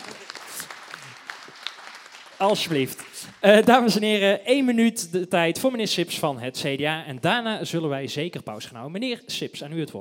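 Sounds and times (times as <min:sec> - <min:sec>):
audience applause: 0:00.0 - 0:03.8
speech: 0:02.4 - 0:09.9.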